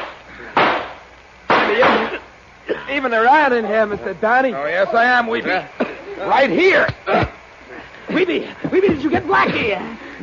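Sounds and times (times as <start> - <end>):
gunshots during a shootout in a crime drama: 0.0 - 2.1
speech: 2.9 - 7.3, 8.2 - 10.2.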